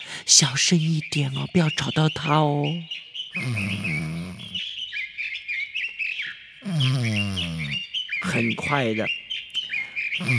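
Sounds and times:
small birds chirping: 0:00.0 - 0:10.3
speech: 0:00.2 - 0:04.2, 0:08.3 - 0:09.2, 0:10.2 - 0:10.3.

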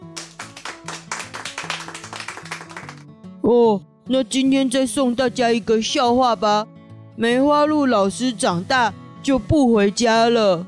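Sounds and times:
clapping: 0:00.0 - 0:03.1
speech: 0:03.4 - 0:10.6.

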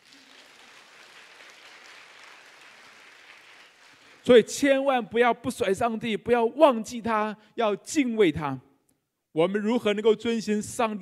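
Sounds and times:
audience applause: 0:00.0 - 0:04.3
speech: 0:04.2 - 0:08.7, 0:09.3 - 0:10.9.

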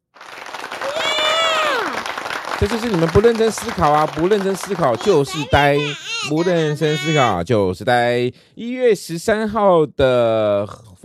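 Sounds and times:
applause: 0:00.0 - 0:06.0
laughter: 0:02.6 - 0:07.3
speech: 0:02.6 - 0:10.9.

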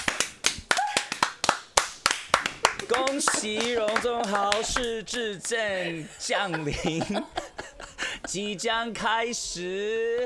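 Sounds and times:
applause: 0:00.0 - 0:05.6
laughter: 0:03.0 - 0:04.8, 0:05.8 - 0:08.6
speech: 0:03.1 - 0:07.7, 0:08.3 - 0:10.2.

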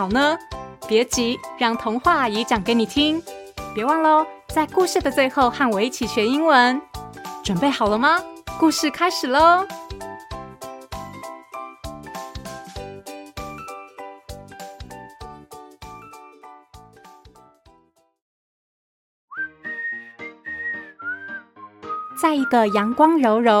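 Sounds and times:
speech: 0:00.0 - 0:09.8, 0:22.3 - 0:23.5
whistling: 0:19.3 - 0:23.0.

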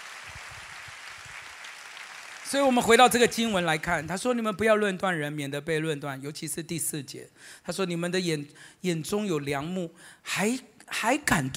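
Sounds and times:
audience applause: 0:00.0 - 0:03.6
speech: 0:02.5 - 0:11.5.

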